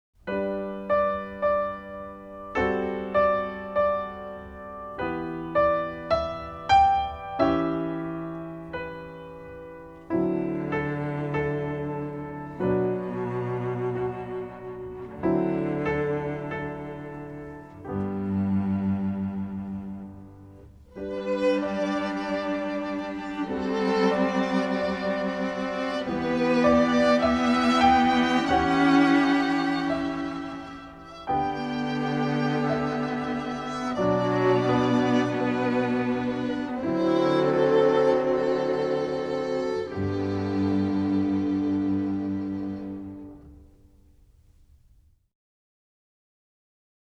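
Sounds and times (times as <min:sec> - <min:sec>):
prelude music: 0:00.2 - 0:45.0.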